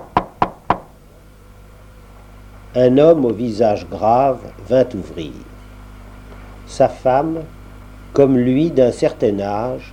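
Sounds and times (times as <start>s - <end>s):
knocks on a door: 0.0s - 0.9s
speech: 2.8s - 5.5s, 6.7s - 9.9s.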